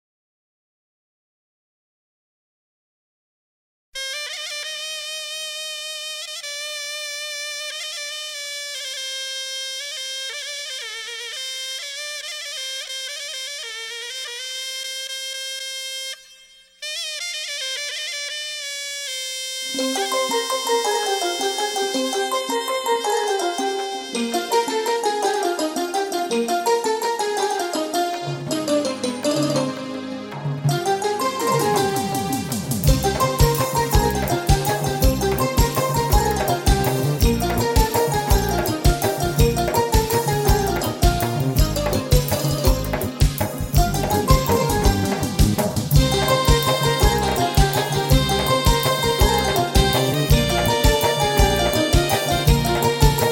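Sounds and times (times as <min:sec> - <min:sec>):
musical accompaniment: 0:19.6 - 0:53.3.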